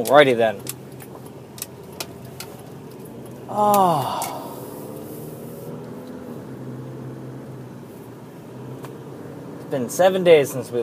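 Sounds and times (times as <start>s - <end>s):
speech: 0.0s - 0.7s, 3.5s - 4.3s, 9.7s - 10.8s
heavy morning traffic passing outside a driveway: 0.0s - 10.8s.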